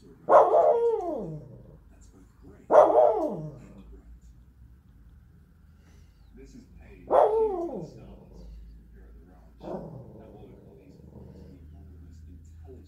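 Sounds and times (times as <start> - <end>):
Spitz dog barking and whining: 0.3 - 1.8, 2.7 - 3.8, 7.1 - 8.4, 9.6 - 11.2.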